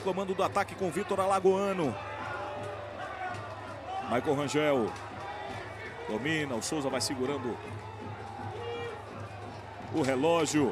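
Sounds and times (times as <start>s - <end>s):
speech: 0.0s - 2.7s, 4.1s - 5.1s, 6.1s - 7.9s, 9.9s - 10.7s
stadium crowd applauding: 0.0s - 10.7s.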